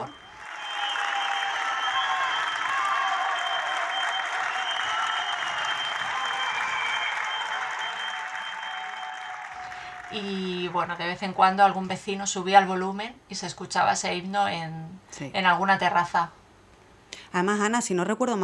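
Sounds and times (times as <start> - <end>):
balcony applause for healthcare workers: 0.0 - 10.6
speech: 10.1 - 16.4, 17.3 - 18.4.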